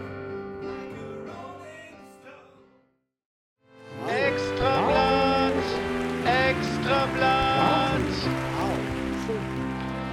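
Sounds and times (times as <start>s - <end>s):
crowd cheering: 3.9s - 10.1s
audience applause: 4.1s - 10.1s.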